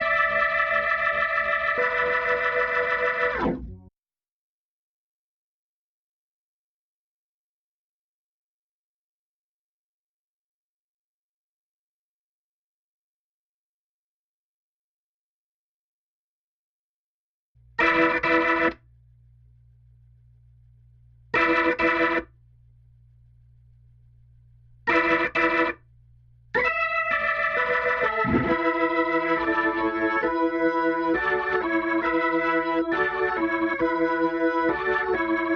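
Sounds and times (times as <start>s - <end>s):
organ: 0.0s - 3.9s, 17.6s - 35.5s.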